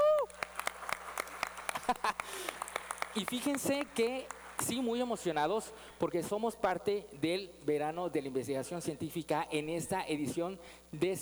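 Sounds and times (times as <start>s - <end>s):
scattered audience applause: 0.0s - 5.0s
speech: 1.9s - 2.6s, 3.2s - 11.2s.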